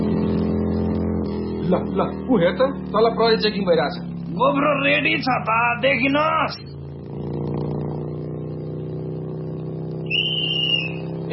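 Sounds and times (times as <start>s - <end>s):
motorcycle speeding toward a police checkpoint: 0.0s - 11.3s
speech: 1.7s - 6.8s.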